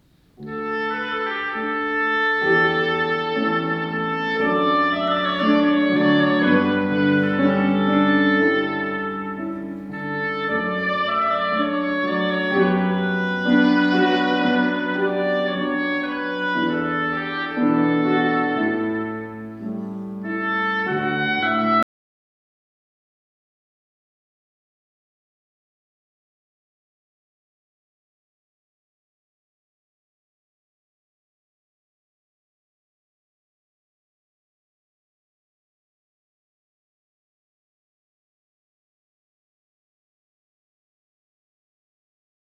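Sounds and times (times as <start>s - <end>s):
oboe: 0.4s - 21.8s.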